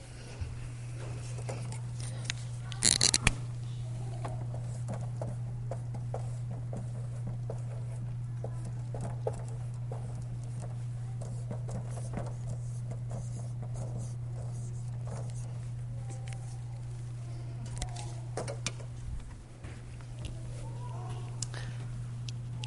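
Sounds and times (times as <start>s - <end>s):
steady low electrical hum: 0.0s - 22.6s
writing on a board during a church sermon: 4.3s - 16.6s.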